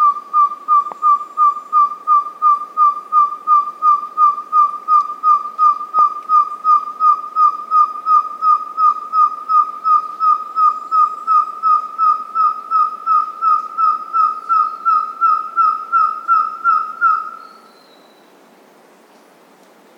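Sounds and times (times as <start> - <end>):
large-tailed nightjar calling: 0.0 - 18.3.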